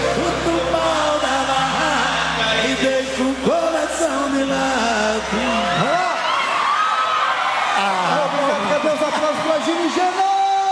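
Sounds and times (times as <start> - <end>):
crowd cheering and whooping: 0.0 - 10.7
applause: 6.7 - 10.7
speech: 9.1 - 10.2.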